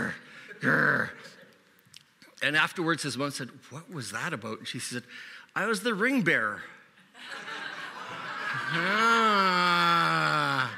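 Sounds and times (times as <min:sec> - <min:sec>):
speech: 0:00.6 - 0:01.4, 0:02.4 - 0:07.6, 0:08.6 - 0:10.7
laughter: 0:07.2 - 0:10.7
audience groaning at a joke during a Christmas sermon: 0:08.6 - 0:10.7.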